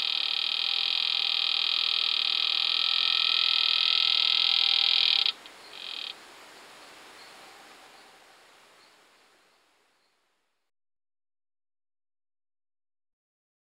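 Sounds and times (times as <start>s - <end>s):
Pipa aspera calling: 0.0s - 6.2s.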